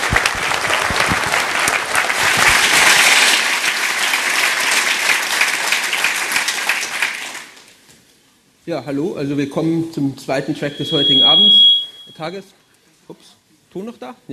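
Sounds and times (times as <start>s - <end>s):
audience applause: 0.0s - 7.8s
speech: 8.7s - 14.3s.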